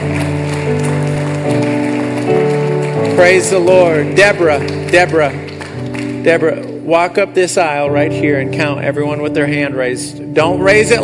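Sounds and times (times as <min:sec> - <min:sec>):
crowd clapping: 0:00.0 - 0:07.7
sustained organ or keyboard chords: 0:00.0 - 0:11.0
speech: 0:03.2 - 0:05.4, 0:06.2 - 0:11.0.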